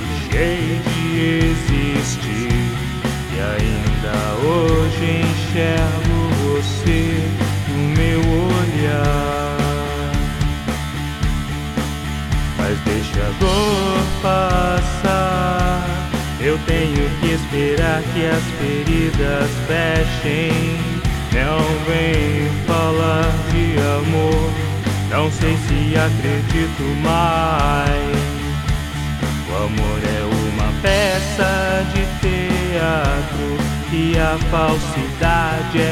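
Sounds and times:
pop rock guitar backing track in D minus one guitar: 0.0 - 35.9.

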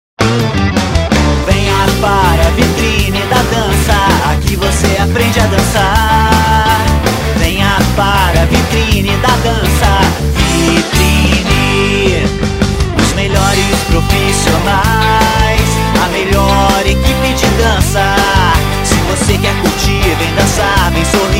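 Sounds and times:
guitar jingle: 0.2 - 21.3.

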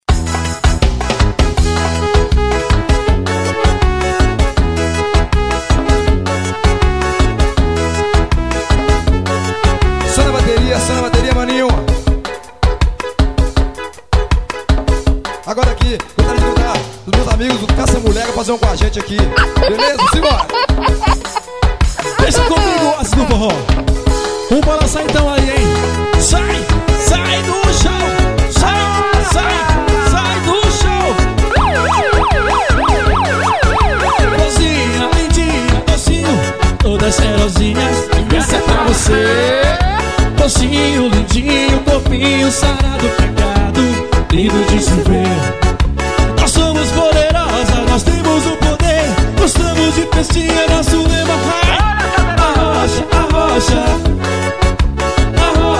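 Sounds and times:
forró music: 0.1 - 55.7
laughter: 19.3 - 23.5, 28.8 - 30.4, 38.1 - 40.2.

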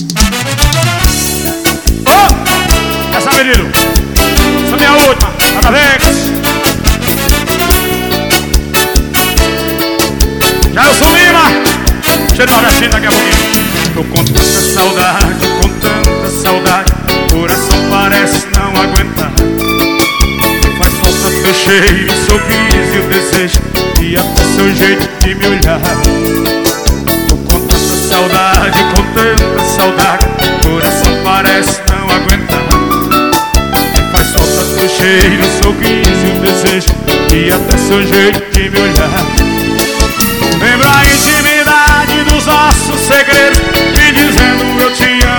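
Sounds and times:
live sertanejo music: 0.2 - 45.3.

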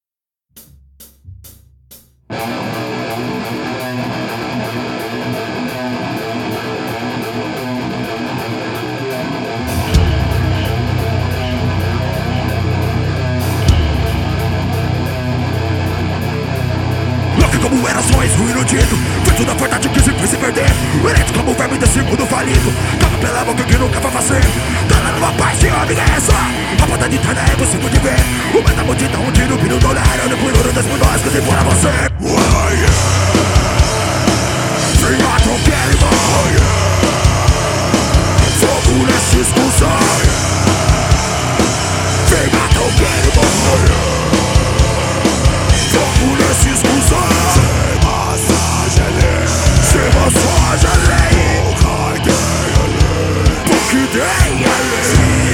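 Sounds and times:
live studio music: 0.6 - 55.5.

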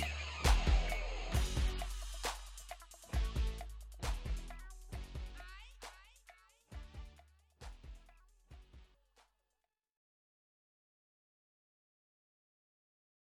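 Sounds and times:
bass beat: 0.0 - 8.9.

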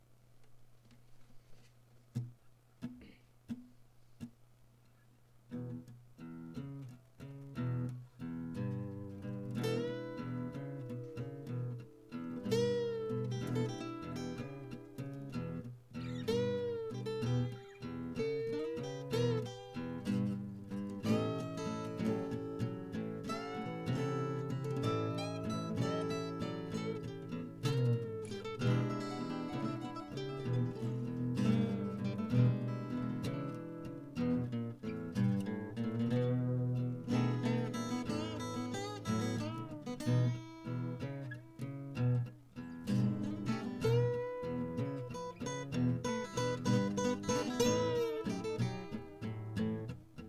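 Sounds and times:
night blues: 5.5 - 50.2.

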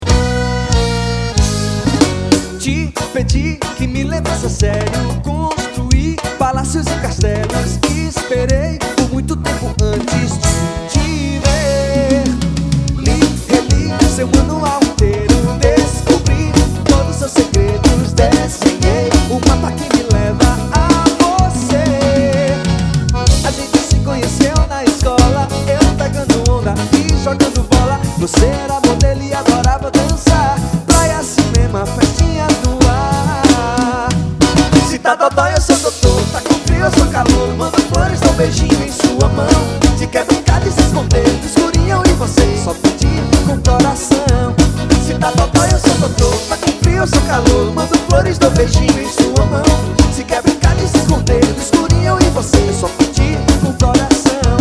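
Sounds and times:
carnival music: 0.0 - 54.6.

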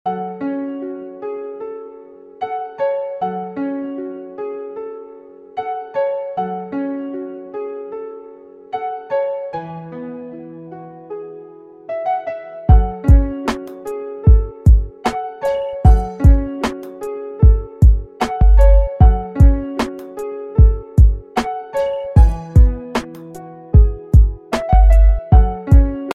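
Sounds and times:
pensive backing track: 12.7 - 26.1.

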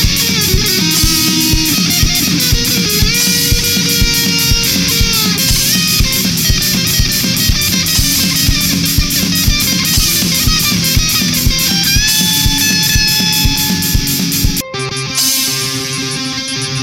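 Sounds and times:
guitar game over jingle: 0.0 - 16.8.

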